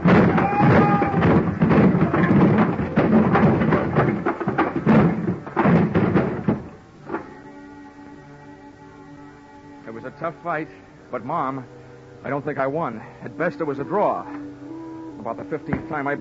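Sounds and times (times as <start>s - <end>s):
dolly crashing into pile of wooden boxes: 0.0s - 7.4s
speech: 10.4s - 16.1s.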